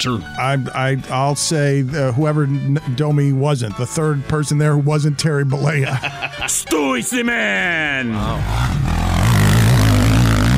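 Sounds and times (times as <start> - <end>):
speech: 0.0 - 8.8
laughter: 5.6 - 7.2
motorcycle riding off with throaty rumbling engine: 8.2 - 10.5.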